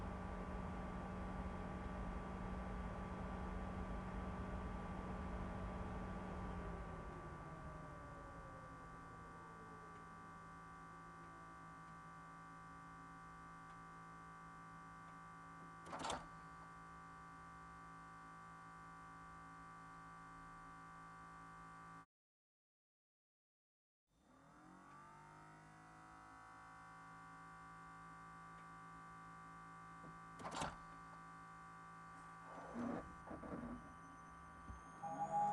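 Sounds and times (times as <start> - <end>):
Kia Niro hybrid electric drive heard onboard: 0.0 - 22.0, 24.2 - 35.5.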